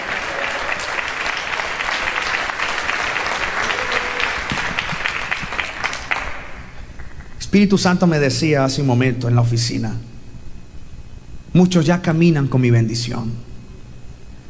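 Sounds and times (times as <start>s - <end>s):
large crowd applauding: 0.0s - 7.2s
speech: 7.6s - 10.1s, 11.6s - 13.5s.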